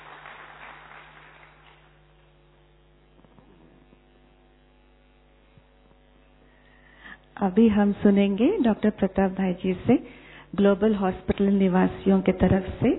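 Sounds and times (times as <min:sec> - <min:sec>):
audience applause: 0:00.0 - 0:02.1
steady low electrical hum: 0:00.0 - 0:12.9
speech: 0:07.4 - 0:12.9.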